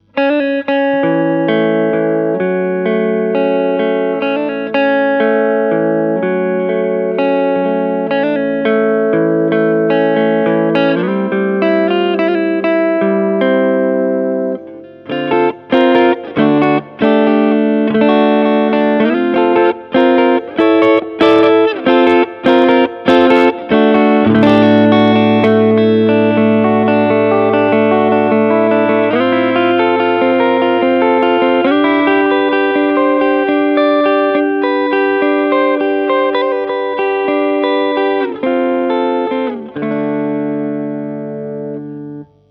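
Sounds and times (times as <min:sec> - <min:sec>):
Music Man Mariposa electric guitar clean neck pickup: 0:00.0 - 0:42.4.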